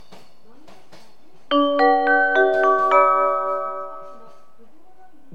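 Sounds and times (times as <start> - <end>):
limited express train at Kyoto station: 0.0 - 4.7.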